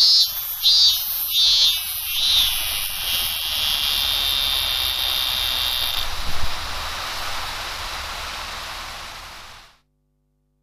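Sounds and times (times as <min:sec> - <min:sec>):
robust cicada singing: 0:00.0 - 0:07.7.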